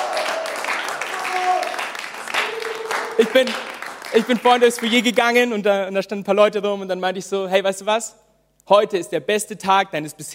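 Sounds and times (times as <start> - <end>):
audience applause: 0.0 - 5.3
speech: 3.2 - 10.3.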